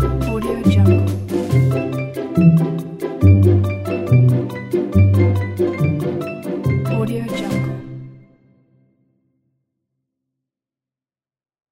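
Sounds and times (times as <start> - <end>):
cheerful kids music: 0.0 - 8.6.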